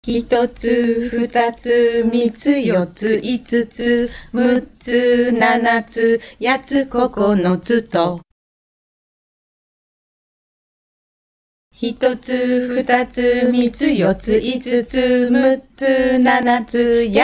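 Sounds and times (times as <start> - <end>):
Japanese counting song: 0.0 - 8.1, 11.8 - 17.2.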